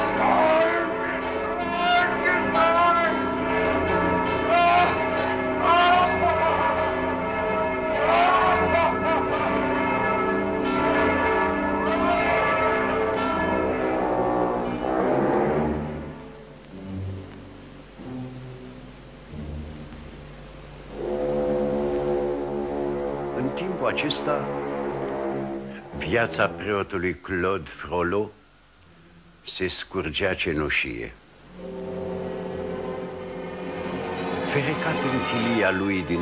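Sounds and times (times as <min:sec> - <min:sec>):
church bells rung by a bell-ringer hanging from their ropes: 0:00.0 - 0:16.6, 0:20.8 - 0:28.2, 0:31.6 - 0:36.2
speech: 0:24.0 - 0:24.6, 0:26.0 - 0:28.4, 0:29.5 - 0:31.7, 0:34.5 - 0:36.2.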